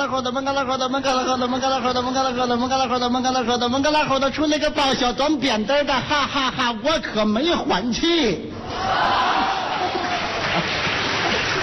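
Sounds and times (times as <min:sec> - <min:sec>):
speech: 0:00.0 - 0:09.6
audience applause: 0:08.9 - 0:11.6.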